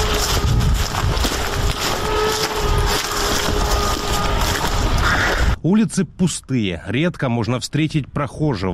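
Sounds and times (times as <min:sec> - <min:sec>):
drone buzzing overhead: 0:00.0 - 0:05.6
speech: 0:05.6 - 0:08.7.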